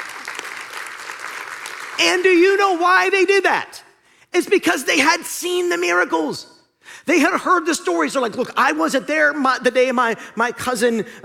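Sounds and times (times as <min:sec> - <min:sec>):
audience applauding: 0:00.0 - 0:02.5
speech: 0:02.0 - 0:03.8, 0:04.4 - 0:06.5, 0:07.1 - 0:11.2.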